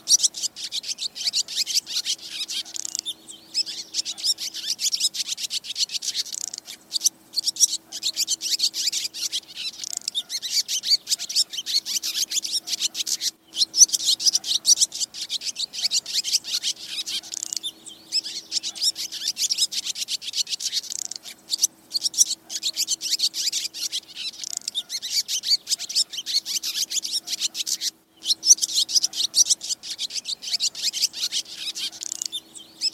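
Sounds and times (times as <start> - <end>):
swallow flock twittering: 0.0 - 32.9.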